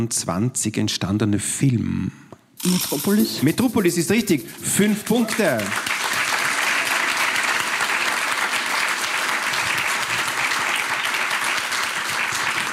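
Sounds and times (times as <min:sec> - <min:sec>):
speech: 0:00.0 - 0:05.9
studio audience applause: 0:04.6 - 0:12.7.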